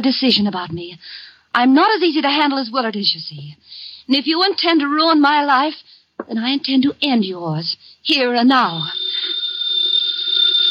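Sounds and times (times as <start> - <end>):
speech: 0.0 - 9.1
house telephone ringing: 8.6 - 10.7.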